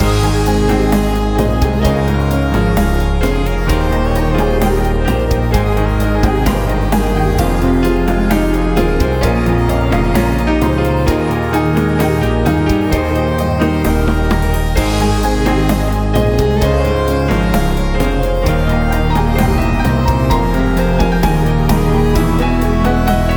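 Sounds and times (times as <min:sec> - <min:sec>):
romantic music loop: 0:00.0 - 0:23.3.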